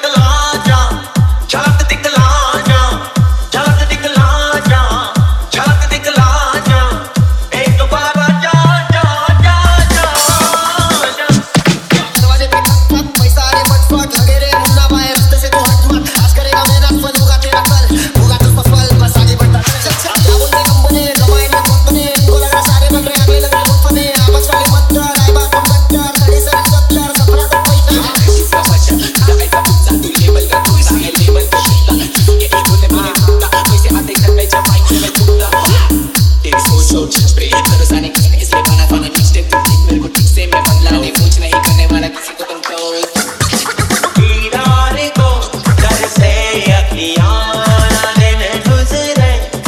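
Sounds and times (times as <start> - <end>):
hard dholki drum with bass: 0.2 - 42.2, 43.1 - 49.6.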